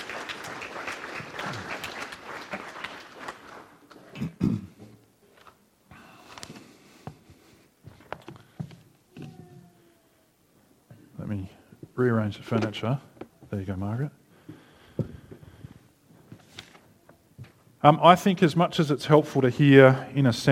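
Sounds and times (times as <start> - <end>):
audience round of applause: 0.0 - 4.4
speech: 12.0 - 14.2, 17.8 - 20.5.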